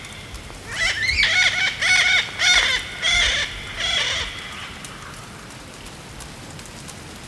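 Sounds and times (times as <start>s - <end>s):
yellow-billed parrot squawking: 0.7s - 4.2s.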